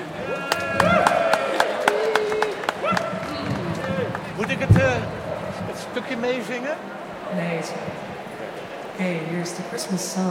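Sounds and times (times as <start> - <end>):
audience applause: 0.0 - 6.8
speech: 6.2 - 8.1, 9.0 - 10.2.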